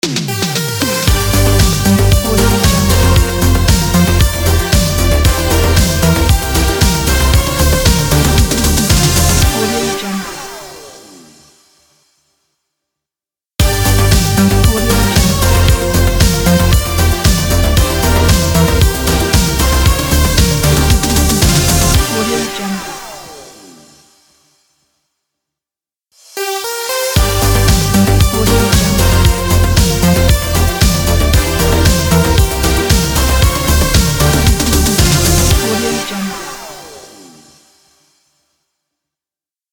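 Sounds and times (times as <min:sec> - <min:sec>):
80s synth pop logo jingle: 0:00.3 - 0:10.6, 0:13.6 - 0:23.1, 0:26.3 - 0:37.4.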